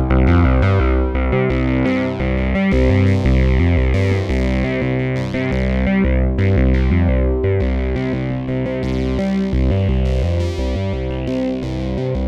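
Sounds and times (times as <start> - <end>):
synthesizer with fixed filter sequence: 0.0 - 12.2.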